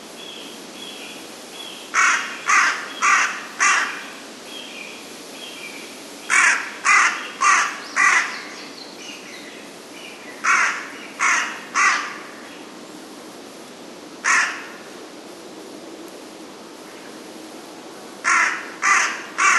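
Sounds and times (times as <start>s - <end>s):
carrion crow cawing: 2.0s - 4.1s, 6.3s - 8.4s, 10.4s - 12.3s, 14.2s - 14.8s, 18.2s - 19.5s.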